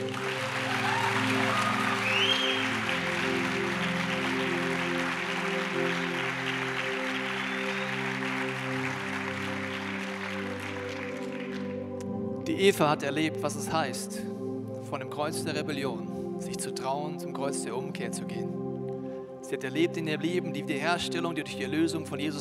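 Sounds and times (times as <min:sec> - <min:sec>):
applause: 0:00.0 - 0:12.2
speech: 0:12.6 - 0:14.3, 0:14.9 - 0:18.6, 0:19.6 - 0:22.4.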